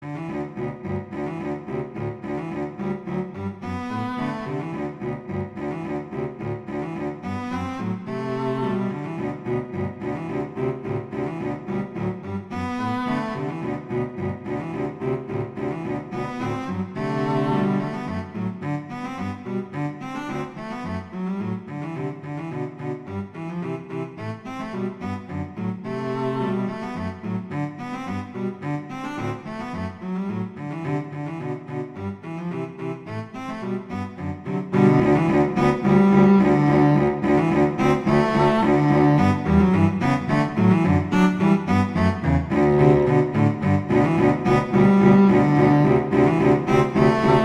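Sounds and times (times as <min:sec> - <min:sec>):
viola duet: 0:00.0 - 0:47.4.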